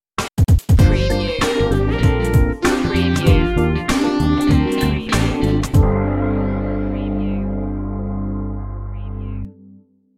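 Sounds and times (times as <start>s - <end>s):
smooth funky love stinger: 0.8s - 9.5s.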